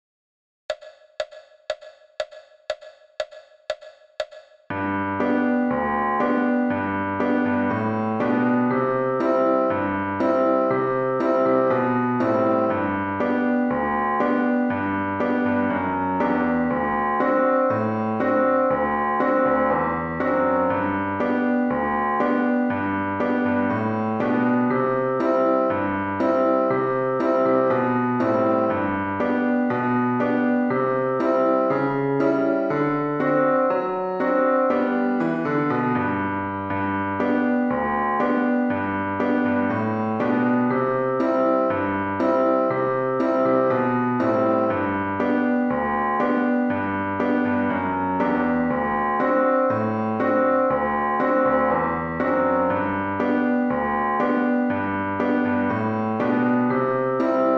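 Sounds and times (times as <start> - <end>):
solo piano: 4.7 - 57.5.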